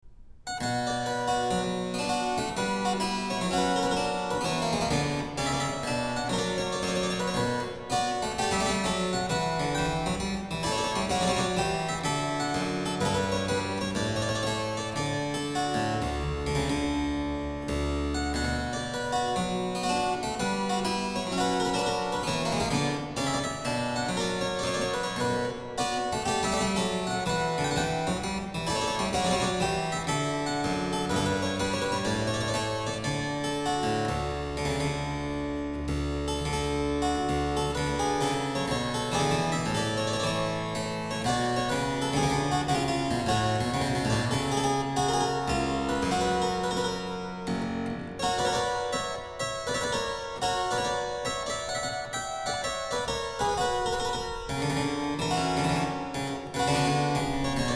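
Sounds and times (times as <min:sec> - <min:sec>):
baroque dance piece: 0:00.5 - 0:57.7.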